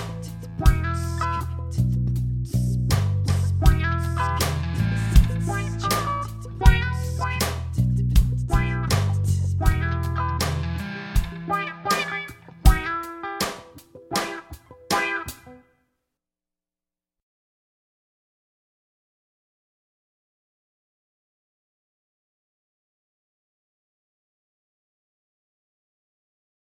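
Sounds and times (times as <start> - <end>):
test groove: 0.0 - 15.6.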